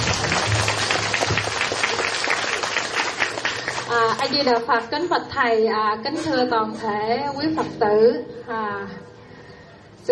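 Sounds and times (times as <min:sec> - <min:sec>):
applause from Buddhist devotees at a temple gathering: 0:00.0 - 0:04.4
speech: 0:04.2 - 0:09.1.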